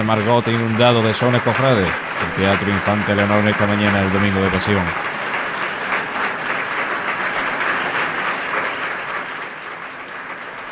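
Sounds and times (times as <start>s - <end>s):
speech: 0.0s - 5.2s
audience applause in a theatre after a march: 0.0s - 10.7s.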